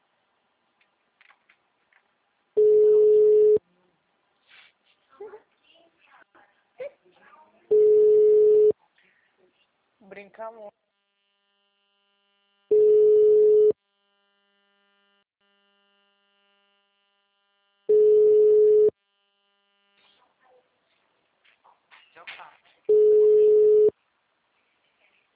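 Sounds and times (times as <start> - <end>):
ringback tones from an unanswered phone call: 2.6 - 3.6, 7.7 - 8.7, 12.7 - 13.8, 17.9 - 18.9, 22.9 - 23.9
speech: 10.4 - 10.8.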